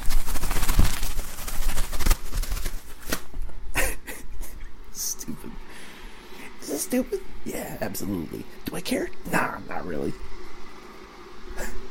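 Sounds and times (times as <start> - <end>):
McDonald's paper napkins rustling: 0.0 - 3.6
speech: 6.9 - 10.4.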